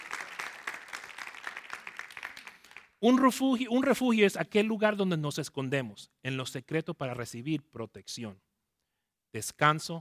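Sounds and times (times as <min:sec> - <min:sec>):
group clapping: 0:00.0 - 0:03.0
speech: 0:03.0 - 0:08.5, 0:09.3 - 0:09.9.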